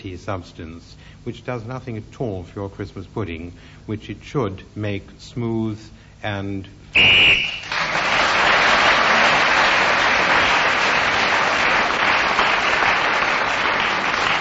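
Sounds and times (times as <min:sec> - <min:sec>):
speech: 0:00.0 - 0:07.3
short shrill referee's whistle blast ending a turn: 0:07.0 - 0:07.8
loud steady audience applause: 0:07.4 - 0:14.4.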